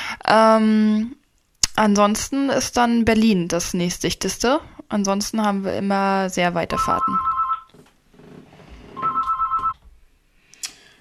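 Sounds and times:
speech: 0:00.3 - 0:01.2, 0:01.8 - 0:07.3
landline telephone ringing: 0:06.8 - 0:07.7, 0:09.0 - 0:09.8.

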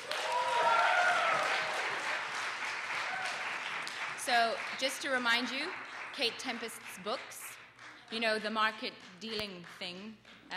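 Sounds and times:
voices cheering and whooping: 0:00.0 - 0:02.1
audience applause after poetry performance: 0:00.0 - 0:09.8
speech: 0:04.3 - 0:07.4, 0:08.1 - 0:10.5.

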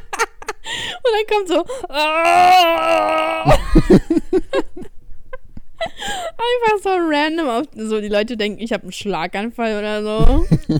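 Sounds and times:
speech: 0:01.1 - 0:04.6, 0:06.4 - 0:10.7
person imitating a sudden wailing scream: 0:01.9 - 0:03.8
laughter: 0:03.4 - 0:04.9.

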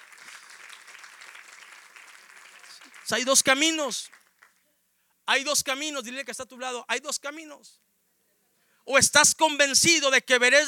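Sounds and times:
audience applause: 0:00.0 - 0:04.6
speech: 0:03.1 - 0:04.2, 0:05.3 - 0:07.9, 0:08.8 - 0:10.6.

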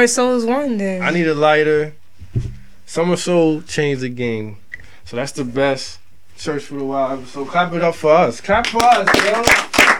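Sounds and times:
speech: 0:00.0 - 0:09.6
handclaps for the hosts: 0:08.6 - 0:09.9.

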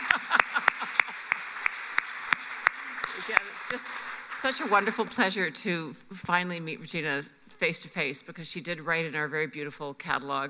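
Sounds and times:
audience clapping: 0:00.0 - 0:05.7
laughter: 0:00.0 - 0:07.7
speech: 0:03.2 - 0:10.4.

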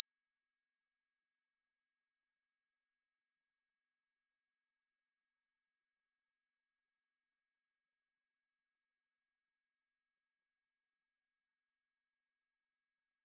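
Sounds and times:
5758 Hz pure sine tone: 0:00.0 - 0:13.2.

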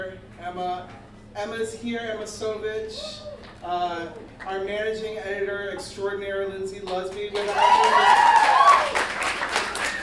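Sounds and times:
speech: 0:00.2 - 0:09.0
audience applause: 0:07.3 - 0:10.0.

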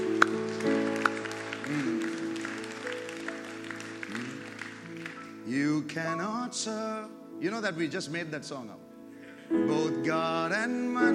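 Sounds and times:
audience clapping: 0:00.0 - 0:06.0
speech: 0:05.5 - 0:08.8, 0:09.5 - 0:11.1.

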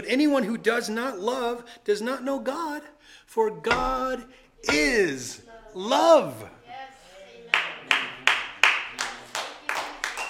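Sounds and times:
speech: 0:00.0 - 0:06.6
audience clapping and cheering: 0:07.6 - 0:10.2.

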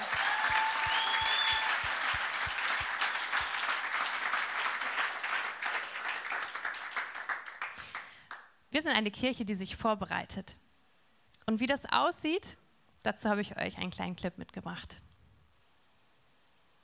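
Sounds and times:
audience applause for tech team: 0:00.0 - 0:08.4
speech: 0:08.8 - 0:10.6, 0:11.5 - 0:15.0.

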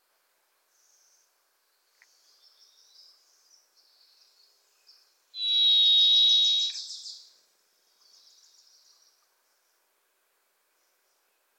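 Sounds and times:
Varied thrush song: 0:05.4 - 0:06.9.

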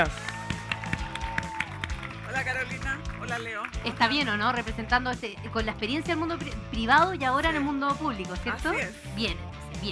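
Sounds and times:
speech: 0:00.0 - 0:00.2, 0:02.4 - 0:09.8
rhythmic audience applause: 0:00.0 - 0:04.9.

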